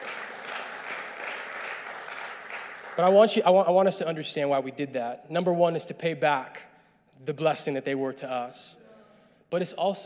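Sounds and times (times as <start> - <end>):
audience clapping hands: 0.0 - 3.4
speech: 3.0 - 8.8, 9.5 - 10.0.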